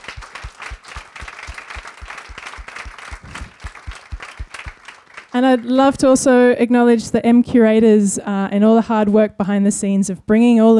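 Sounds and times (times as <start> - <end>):
audience round of applause: 0.0 - 5.7
speech: 5.4 - 10.7.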